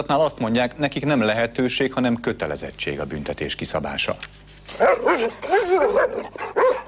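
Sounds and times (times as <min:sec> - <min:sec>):
speech: 0:00.0 - 0:06.7
stray dogs barking and yelping in a yard in Debrecen: 0:04.7 - 0:06.8.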